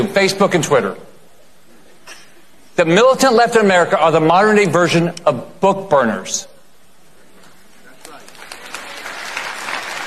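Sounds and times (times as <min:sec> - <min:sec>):
speech: 0:00.1 - 0:01.1, 0:02.8 - 0:06.5
audience applause: 0:08.0 - 0:10.0.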